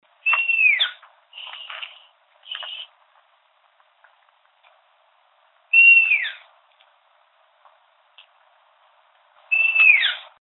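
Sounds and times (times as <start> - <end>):
long-eared owl calling: 0.2 - 3.0, 5.7 - 6.5, 9.5 - 10.4.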